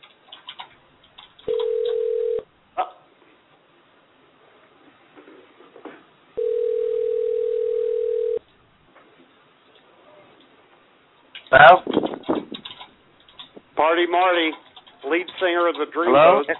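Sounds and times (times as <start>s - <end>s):
telephone tone: 1.5s - 2.4s, 6.4s - 8.4s
speech: 11.5s - 12.0s, 14.0s - 16.5s.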